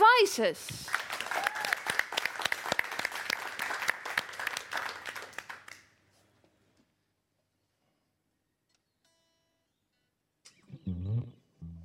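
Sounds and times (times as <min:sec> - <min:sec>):
speech: 0:00.2 - 0:01.0
audience applause: 0:00.9 - 0:05.9.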